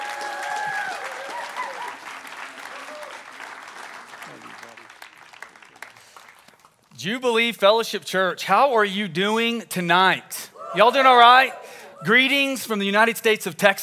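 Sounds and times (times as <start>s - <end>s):
church congregation applause welcoming a guest speaker at a New Year's Eve service: 0.0s - 6.9s
speech: 7.0s - 13.8s.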